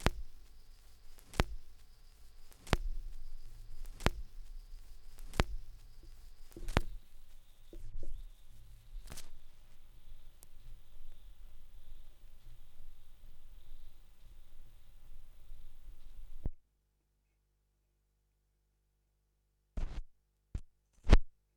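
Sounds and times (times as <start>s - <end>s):
vinyl record noise: 0.0s - 16.6s.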